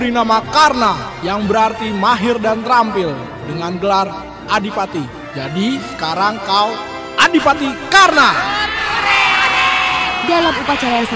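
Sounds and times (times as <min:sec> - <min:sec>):
speech: 0:00.0 - 0:08.6, 0:10.3 - 0:11.1
crowd cheering and whooping: 0:08.0 - 0:11.1.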